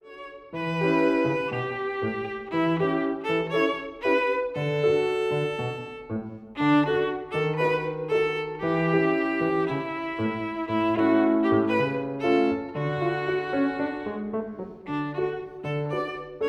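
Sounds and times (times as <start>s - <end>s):
violin: 0.0s - 16.4s.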